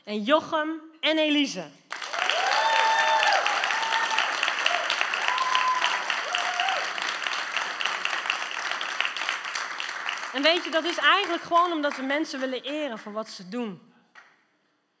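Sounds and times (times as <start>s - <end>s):
speech: 0.1s - 1.8s, 10.3s - 13.9s
audience applause: 1.9s - 12.1s
whoops and cheering voices: 2.0s - 7.1s.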